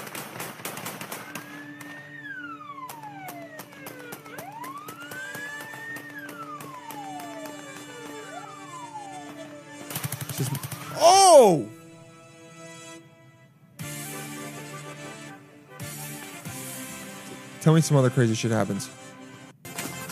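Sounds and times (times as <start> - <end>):
guns fired into the air at a Russian Chechen wedding: 0.0 - 11.0
wailing siren-like tones: 1.1 - 11.7
speech: 10.4 - 11.8, 17.6 - 19.0.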